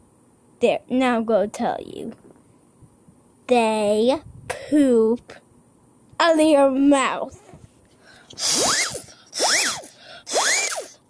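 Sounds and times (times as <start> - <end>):
speech: 0.6 - 2.3, 3.5 - 5.4, 6.2 - 7.4, 8.4 - 8.8
ghost alarm going off: 8.4 - 10.9.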